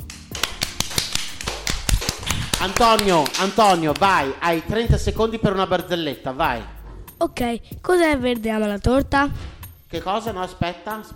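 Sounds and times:
applause: 0.0 - 4.3
speech: 2.6 - 11.1.

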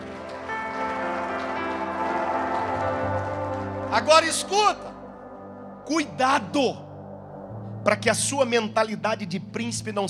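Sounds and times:
audience applauding: 0.0 - 5.0
speech: 3.9 - 4.9, 5.9 - 6.8, 7.8 - 10.0.

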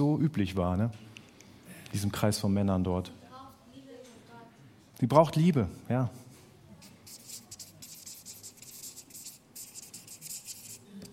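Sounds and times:
speech: 0.0 - 1.2, 1.9 - 3.2, 5.0 - 6.2
writing during a group discussion: 6.8 - 10.8.

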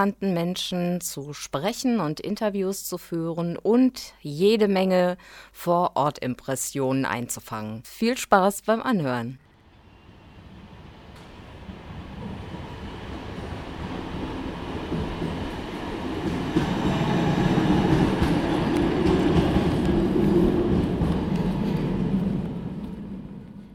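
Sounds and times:
speech: 0.0 - 9.4
rail car rumbling through a train station: 9.4 - 23.7.

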